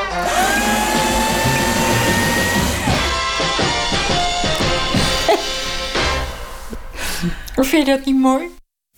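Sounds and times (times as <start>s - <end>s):
paper shredder running: 0.1s - 4.5s
laughter: 5.0s - 5.7s
speech: 7.6s - 8.6s.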